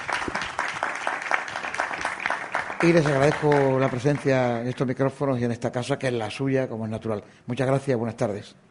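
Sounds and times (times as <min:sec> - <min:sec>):
crowd applauding: 0:00.0 - 0:05.1
speech: 0:02.8 - 0:08.6.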